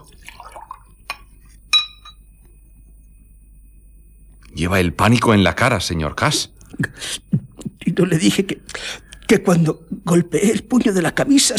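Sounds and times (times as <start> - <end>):
drink pouring into a glass: 0.0 - 1.0
glass clinks: 1.7 - 2.2
speech: 4.6 - 7.3, 8.0 - 11.5.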